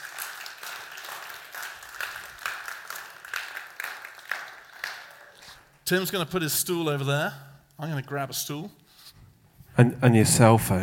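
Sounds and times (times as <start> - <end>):
audience applause: 0.0 - 5.8
speech: 5.9 - 8.8, 9.8 - 10.8.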